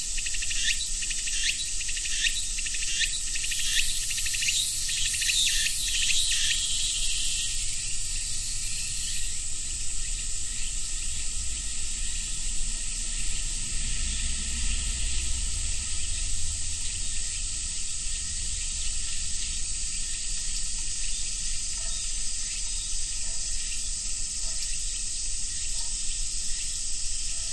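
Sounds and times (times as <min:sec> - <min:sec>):
cicadas: 0:00.0 - 0:27.5.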